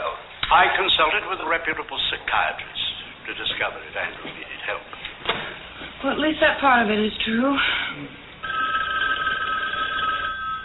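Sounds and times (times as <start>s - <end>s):
speech: 0.5s - 8.2s
telephone ringing: 8.4s - 10.6s.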